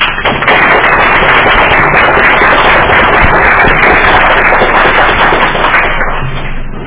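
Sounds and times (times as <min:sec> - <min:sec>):
round of applause from a group: 0:00.0 - 0:06.7.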